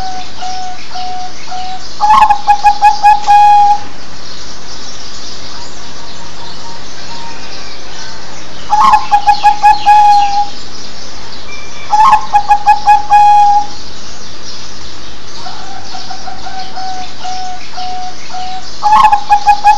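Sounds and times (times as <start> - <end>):
zebra dove cooing: 0.0 - 3.9, 8.7 - 10.5, 11.9 - 13.8, 15.4 - 19.7.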